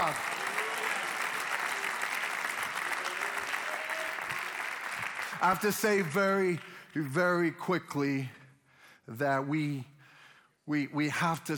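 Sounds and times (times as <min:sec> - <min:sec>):
audience clapping: 0:00.0 - 0:07.5
speech: 0:05.4 - 0:08.4, 0:09.1 - 0:09.9, 0:10.7 - 0:11.5.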